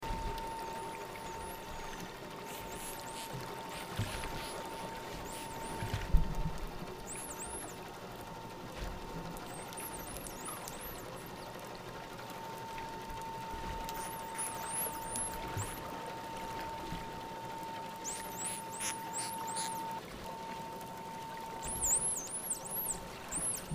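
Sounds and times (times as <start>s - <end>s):
dolphins: 0.0s - 23.7s
underwater noise: 0.0s - 23.7s.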